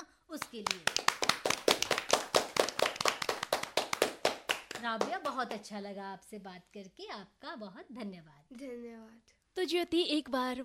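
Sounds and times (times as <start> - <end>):
speech: 0.3 - 1.4, 4.8 - 10.6
audience clapping: 0.4 - 5.7.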